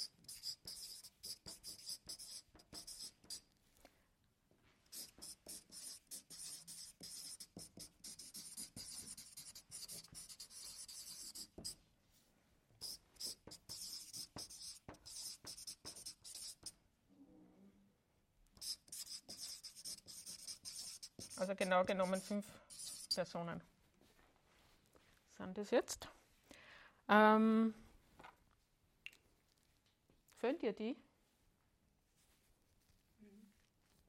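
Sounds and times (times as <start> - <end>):
pen strokes writing names by hand: 0.0 - 3.4, 4.9 - 11.8, 12.8 - 16.7, 18.6 - 23.4
speech: 21.4 - 22.6, 23.2 - 23.7, 25.4 - 26.1, 27.1 - 27.8, 30.5 - 31.0.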